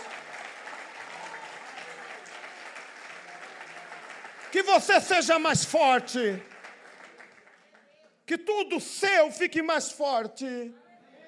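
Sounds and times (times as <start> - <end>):
audience applause: 0.0 - 7.8
speech: 4.6 - 6.5, 8.3 - 10.8.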